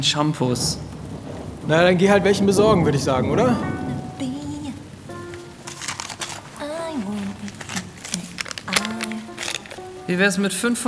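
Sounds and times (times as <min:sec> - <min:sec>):
speech: 0:00.0 - 0:01.0, 0:01.6 - 0:03.7, 0:10.1 - 0:10.8
rain falling: 0:00.0 - 0:10.8.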